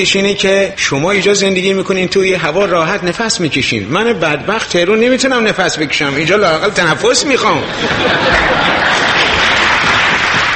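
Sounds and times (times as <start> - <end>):
speech: 0.0 - 9.1
laughter: 6.8 - 10.5
audience clapping: 7.7 - 10.5.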